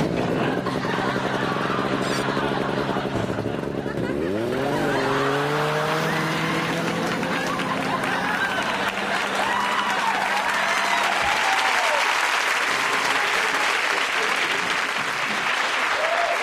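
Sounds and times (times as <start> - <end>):
small motor revving on a motorized porta potty: 0.0 - 11.4
laughter: 0.0 - 16.3
loud continuous noise: 0.0 - 16.3.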